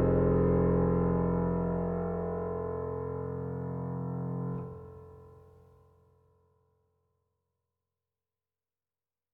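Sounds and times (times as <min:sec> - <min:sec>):
rosewood grand piano dream ambience: 0:00.0 - 0:05.6.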